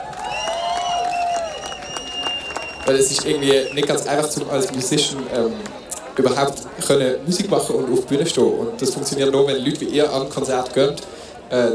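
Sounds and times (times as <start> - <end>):
audience cheering: 0.0 - 4.8
audience applause: 0.0 - 5.8
speech: 2.9 - 11.7.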